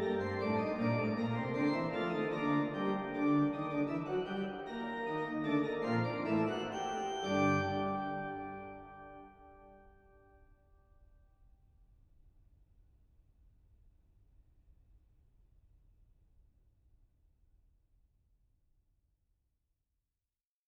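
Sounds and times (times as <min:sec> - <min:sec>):
organ playing: 0:00.0 - 0:09.8.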